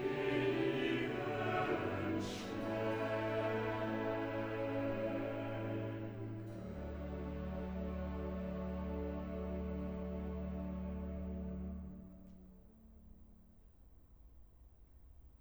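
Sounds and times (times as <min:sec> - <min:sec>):
choir singing: 0:00.0 - 0:11.8.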